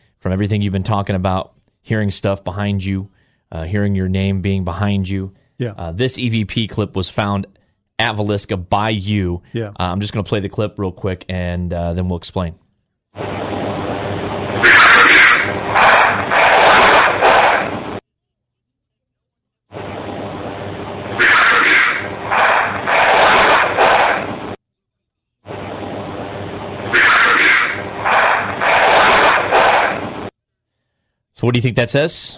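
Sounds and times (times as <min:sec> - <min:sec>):
speech: 0:00.2 - 0:12.6, 0:13.2 - 0:13.4, 0:31.4 - 0:32.3
gunshots or firecrackers: 0:13.2 - 0:18.0, 0:21.2 - 0:24.6, 0:26.9 - 0:30.3.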